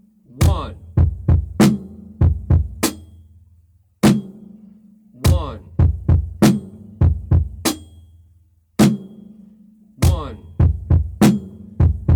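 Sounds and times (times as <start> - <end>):
drum beat: 0.4 - 3.2, 4.0 - 4.5, 5.2 - 8.1, 8.8 - 9.3, 10.0 - 12.1.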